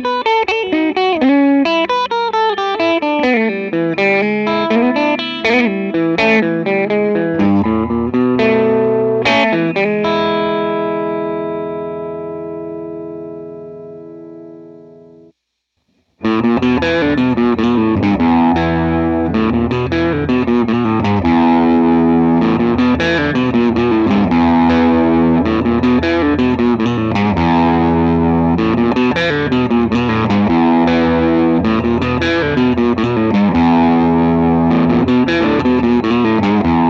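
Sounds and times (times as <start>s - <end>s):
electric guitar through overdriven tube amp: 0.0s - 15.3s, 16.0s - 36.8s.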